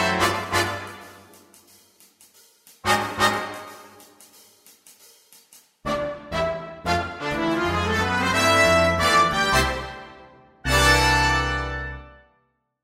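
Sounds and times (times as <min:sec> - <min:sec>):
happy trumpet dance music: 0:00.0 - 0:01.5, 0:02.8 - 0:04.2, 0:05.8 - 0:12.3.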